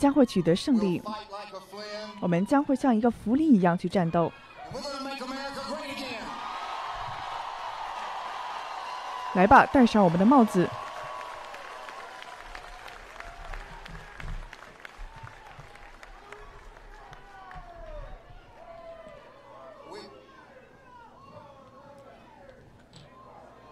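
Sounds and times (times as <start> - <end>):
speech: 0.0 - 5.1, 9.4 - 10.8
large crowd cheering: 0.0 - 23.7
scattered clapping: 7.2 - 18.7.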